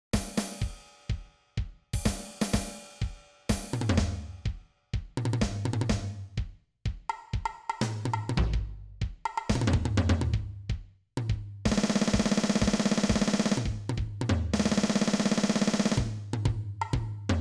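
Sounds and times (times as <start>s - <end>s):
drums: 0.0s - 17.3s.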